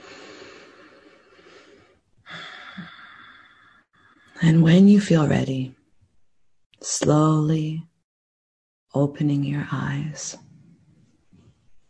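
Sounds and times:
deep breath in during guided meditation: 0.0 - 4.4
speech: 4.4 - 5.8, 6.9 - 7.9, 9.0 - 10.5.

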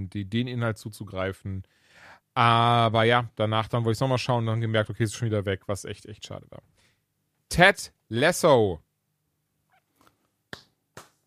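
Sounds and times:
speech: 0.1 - 6.8, 7.5 - 8.9
hand clap: 10.5 - 11.2.

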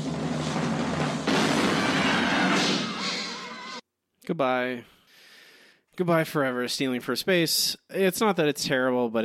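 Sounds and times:
cannon firing: 0.2 - 3.8
speech: 4.3 - 4.9, 6.0 - 9.2.

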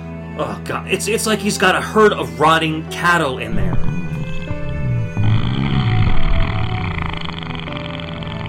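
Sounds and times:
speech: 0.4 - 4.1
giant monster farting: 3.6 - 8.4.

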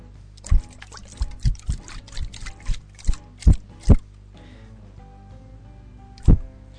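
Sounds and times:
Furu Furu shaker being shaken: 0.4 - 4.0.

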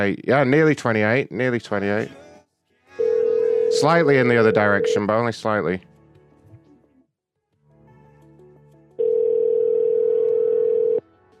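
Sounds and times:
speech: 0.0 - 2.2, 3.7 - 5.9
telephone dial tone while calling a home phone: 3.0 - 5.1, 9.0 - 11.0.

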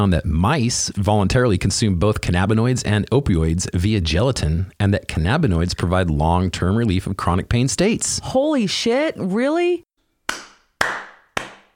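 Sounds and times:
speech: 0.0 - 9.9
applause: 10.3 - 11.7.

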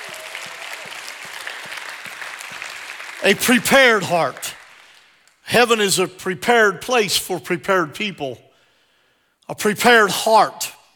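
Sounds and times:
audience hand clapping: 0.0 - 5.5
speech: 3.2 - 4.5, 5.5 - 8.4, 9.5 - 10.7.

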